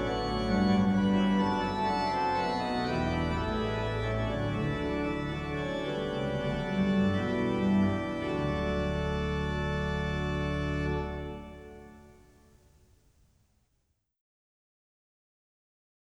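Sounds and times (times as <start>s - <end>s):
organ playing chorale preludes: 0.0s - 12.3s.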